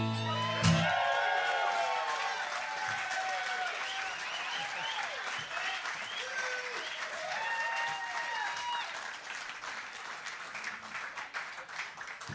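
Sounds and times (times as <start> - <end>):
whoops and cheering voices: 0.2 - 9.1
audience clapping: 0.3 - 12.3.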